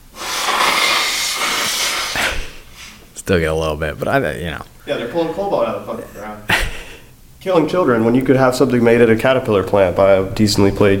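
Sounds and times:
nose blowing: 0:00.0 - 0:03.2
speech: 0:03.3 - 0:06.6, 0:07.4 - 0:10.9.

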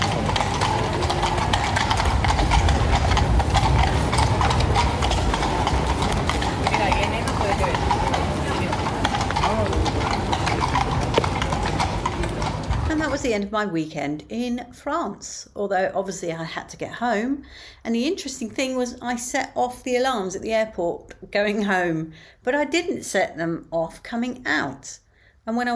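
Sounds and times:
police horses' hooves clip-clopping on street: 0:00.0 - 0:13.4
traffic and engine noise: 0:00.0 - 0:13.4
speech: 0:13.4 - 0:25.7.

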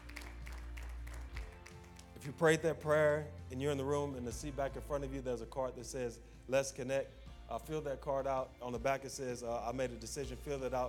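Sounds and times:
audience hand clapping: 0:00.0 - 0:02.6
speech: 0:02.2 - 0:10.8.

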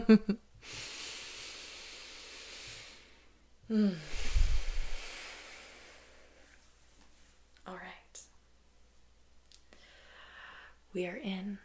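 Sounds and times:
speech: 0:00.1 - 0:00.9, 0:03.7 - 0:04.2, 0:10.9 - 0:11.6
person breathing deeply: 0:00.6 - 0:06.6, 0:09.7 - 0:10.9.

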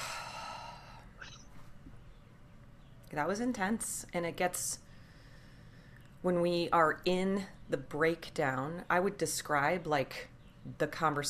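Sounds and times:
deep breath drawn in through the nose: 0:00.0 - 0:01.1
speech: 0:03.1 - 0:04.8, 0:06.2 - 0:11.2.

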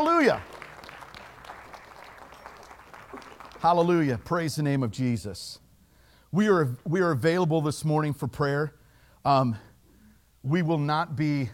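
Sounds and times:
speech: 0:00.0 - 0:00.5, 0:03.6 - 0:05.6, 0:06.3 - 0:09.7, 0:10.4 - 0:11.5
church congregation clapping their hands in praise: 0:00.0 - 0:04.7.

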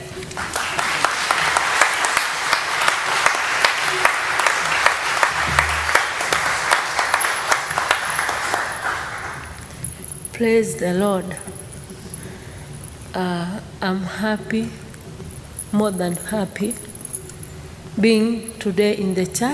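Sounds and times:
audience applause in church: 0:00.0 - 0:09.7
speech: 0:10.4 - 0:11.6, 0:13.2 - 0:14.8, 0:15.7 - 0:16.9, 0:18.0 - 0:19.5.

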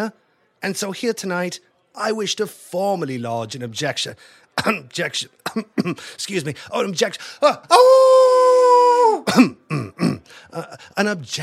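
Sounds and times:
speech: 0:00.0 - 0:08.2, 0:09.2 - 0:09.8, 0:10.4 - 0:11.4
performer clearing throat theatrically in a comedic skit: 0:04.6 - 0:06.1, 0:09.2 - 0:10.8
performer coughing in a comedic skit: 0:04.6 - 0:06.1, 0:09.2 - 0:10.9.

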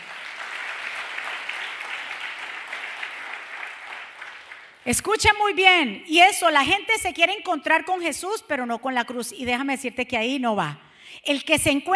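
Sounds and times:
crowd applause: 0:00.0 - 0:04.8
speech: 0:04.8 - 0:11.9.

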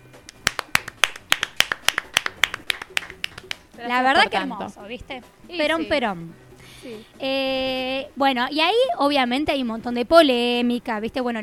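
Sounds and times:
applause: 0:00.3 - 0:03.6
speech: 0:03.8 - 0:11.4.

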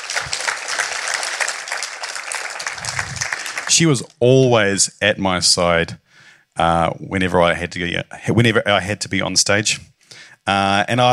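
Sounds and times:
audience clapping: 0:00.0 - 0:04.2
speech: 0:03.7 - 0:06.0, 0:06.6 - 0:11.1.

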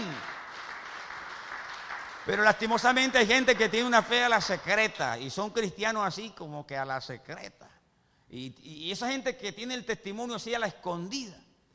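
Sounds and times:
audience applauding: 0:00.0 - 0:04.9
speech: 0:02.3 - 0:11.4.

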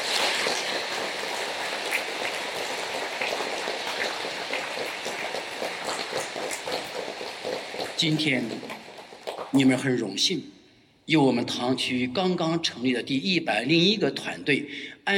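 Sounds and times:
audience applause: 0:00.0 - 0:09.9
speech: 0:08.0 - 0:08.7, 0:09.5 - 0:15.1.

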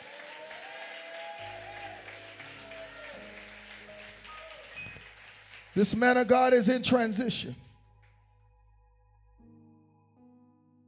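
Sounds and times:
audience hand clapping: 0:00.0 - 0:07.6
speech: 0:05.8 - 0:07.6.

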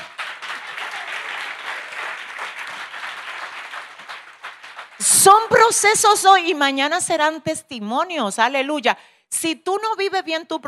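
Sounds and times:
audience applause: 0:00.0 - 0:05.4
speech: 0:05.2 - 0:10.6.

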